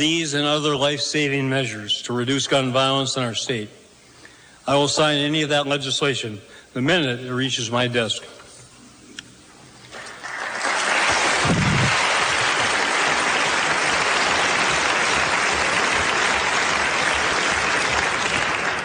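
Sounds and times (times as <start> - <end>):
speech: 0.0 - 3.8, 4.7 - 8.4
audience applause: 9.9 - 18.8.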